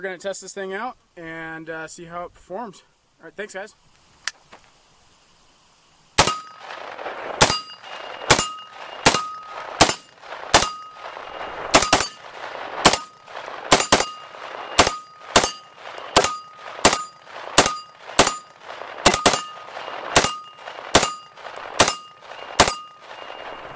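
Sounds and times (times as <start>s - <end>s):
speech: 0.0s - 3.9s
spent shells striking a shell deflector: 6.2s - 6.8s, 7.4s - 23.7s
9mm submachine gun firing: 6.2s - 23.7s.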